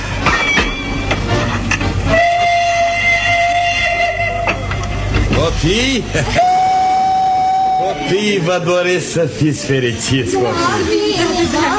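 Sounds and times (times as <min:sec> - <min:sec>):
train rumbling and clanking at a railway station: 0:00.0 - 0:06.5
train whistle: 0:02.0 - 0:05.3, 0:06.3 - 0:08.4
speech: 0:05.6 - 0:06.4, 0:08.0 - 0:11.7.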